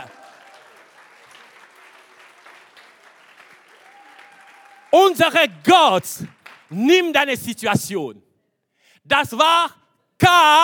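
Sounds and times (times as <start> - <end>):
audience applause: 0.0 - 5.5, 6.2 - 6.8
speech: 4.9 - 8.2, 9.0 - 10.6.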